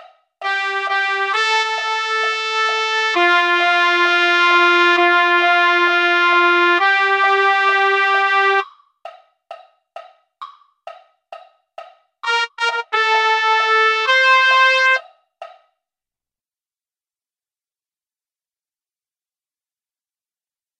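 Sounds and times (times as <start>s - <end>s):
trumpet: 0.4s - 8.6s, 12.2s - 15.0s.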